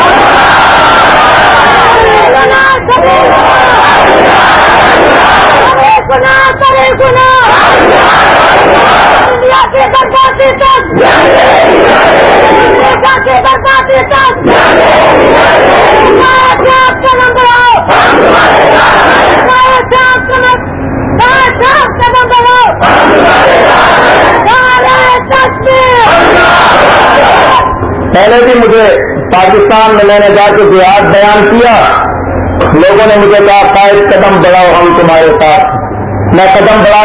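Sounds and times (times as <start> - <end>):
crowd chanting religious slogans: 0.0 - 28.0
speech: 28.2 - 32.0, 32.7 - 35.7, 36.3 - 37.0.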